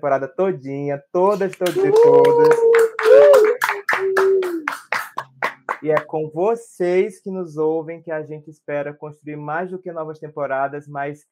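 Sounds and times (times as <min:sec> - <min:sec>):
speech: 0:00.0 - 0:04.3, 0:05.8 - 0:11.3
loud sharp applause claps: 0:01.3 - 0:06.1
sustained hum or whoop: 0:01.7 - 0:05.0.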